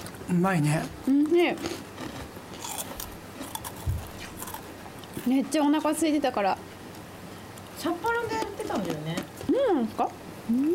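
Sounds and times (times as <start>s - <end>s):
speech: 0.3s - 1.9s, 5.3s - 6.7s, 7.8s - 10.7s
crisp crunchy bites into food: 1.6s - 5.2s.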